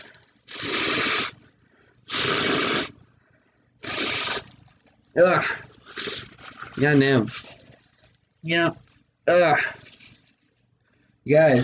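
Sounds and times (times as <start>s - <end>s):
nose blowing: 0.0s - 3.0s, 3.8s - 4.6s, 5.3s - 6.6s
speech: 5.2s - 5.7s, 6.8s - 7.4s, 8.4s - 9.8s, 11.2s - 11.6s.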